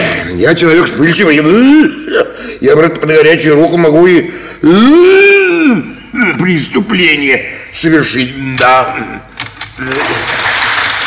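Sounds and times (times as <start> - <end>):
speech: 0.3 - 10.4
bank employees applauding Shipuchin: 9.8 - 11.0.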